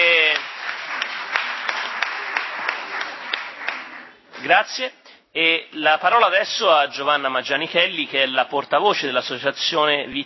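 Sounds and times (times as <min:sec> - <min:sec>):
audience applause at a civic event: 0:00.0 - 0:04.2
speech: 0:04.5 - 0:10.2.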